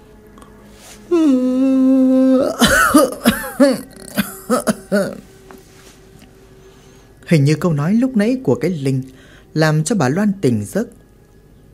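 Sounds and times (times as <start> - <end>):
speech: 1.0 - 1.7, 7.3 - 11.0
elderly woman yawning after waking: 1.1 - 5.2
elderly woman coughing harshly: 2.5 - 5.2.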